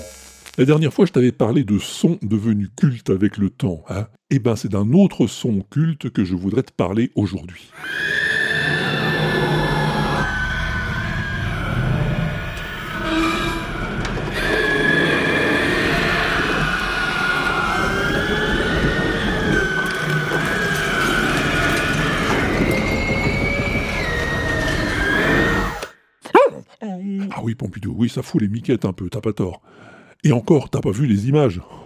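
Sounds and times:
speech: 0.6 - 8.3, 27.1 - 31.8
demonic scream from a horror film: 7.7 - 25.9.

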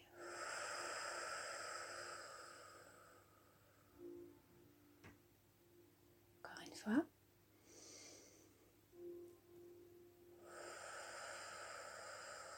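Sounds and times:
deep breath in and out during a guided breathing exercise: 0.0 - 4.3, 7.5 - 9.2, 9.9 - 12.5
speech: 6.8 - 7.1.

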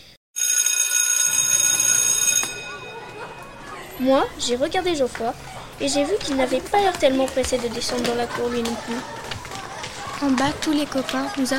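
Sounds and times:
school recess bell ringing: 0.4 - 4.9
speech: 4.0 - 9.2, 10.2 - 11.5.

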